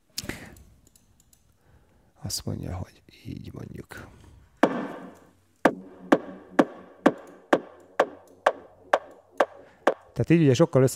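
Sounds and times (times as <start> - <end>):
speech: 2.3 - 4.3, 10.2 - 10.9
sharp wooden chopping or tapping hits with reverb effect: 4.6 - 10.2.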